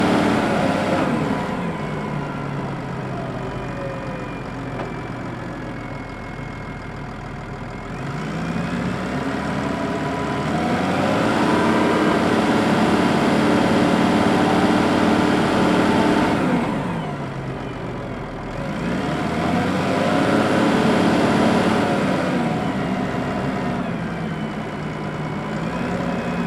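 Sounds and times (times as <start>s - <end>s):
1996 Volvo L90C wheel loader driving, heard onboard: 0.0s - 26.4s
Volvo L90C wheel loader engine shutting off: 0.0s - 26.4s.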